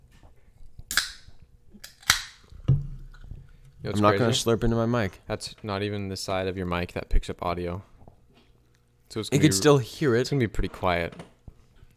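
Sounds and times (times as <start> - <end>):
sparkling water cans popping open with fizzy hiss: 0.9 - 3.2
speech: 3.8 - 7.9, 9.1 - 11.3.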